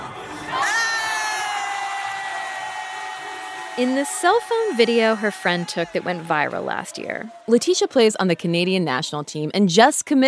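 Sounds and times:
high-pitched shrieks and whoops: 0.0s - 7.8s
crowd cheering a slam dunk: 0.0s - 10.2s
speech: 3.8s - 10.2s.

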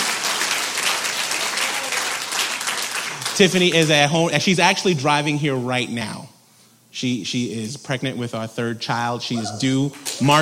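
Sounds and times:
audience clapping: 0.0s - 4.3s, 9.8s - 10.4s
speech: 3.4s - 6.3s, 7.0s - 10.4s.

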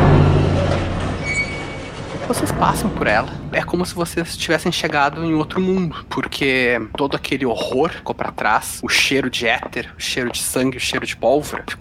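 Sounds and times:
high squeal: 0.0s - 3.7s
heavy metal door opening: 0.0s - 6.4s
speech: 2.3s - 11.7s.

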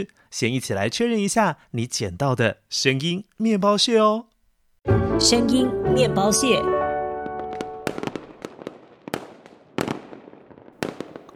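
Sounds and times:
speech: 0.0s - 6.8s
fireworks going off: 7.2s - 11.3s.

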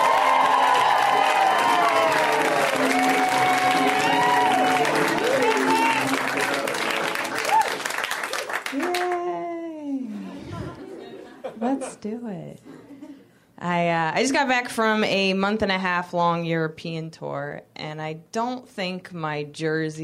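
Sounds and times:
comedy club audience in Los Angeles applauding and cheering: 0.0s - 9.5s
laughter: 10.0s - 12.0s
speech: 13.8s - 20.0s.

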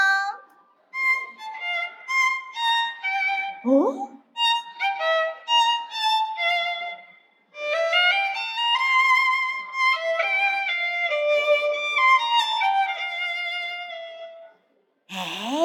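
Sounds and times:
live violin playing: 1.0s - 3.6s, 4.4s - 14.2s
speech: 3.6s - 4.1s.

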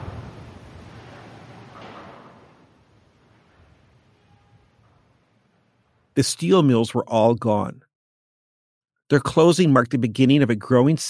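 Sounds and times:
wind rushing: 0.0s - 2.7s
speech: 6.2s - 7.9s, 9.1s - 11.0s.

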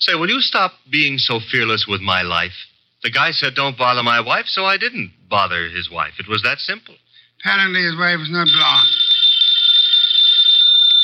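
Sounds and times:
speech: 0.0s - 9.0s
telephone ringing: 8.4s - 11.0s.

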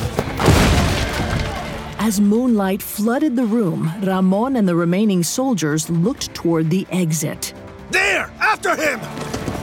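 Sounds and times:
crashing through the front door: 0.2s - 2.0s
speech: 2.0s - 9.4s.

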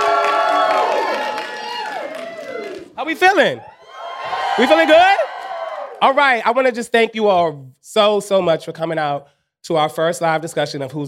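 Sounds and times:
crowd cheering and shouting to welcome a moderator at a live discussion: 0.0s - 6.4s
speech: 3.0s - 3.8s, 4.6s - 5.2s, 6.0s - 11.0s.

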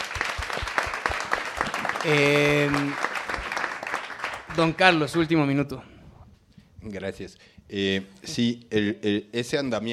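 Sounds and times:
audience applause: 0.0s - 5.0s
speech: 2.0s - 3.1s, 4.6s - 5.9s, 6.8s - 9.9s.

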